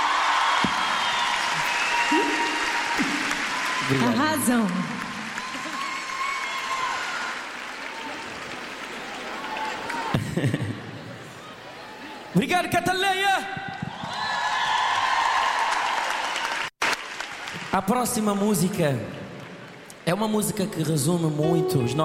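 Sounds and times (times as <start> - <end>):
cheers: 0.0 - 10.2, 13.3 - 17.7
audience clapping: 0.0 - 10.7, 13.7 - 18.6
speech: 3.9 - 5.0, 10.4 - 10.6, 12.4 - 13.6, 17.8 - 19.2, 20.1 - 22.0.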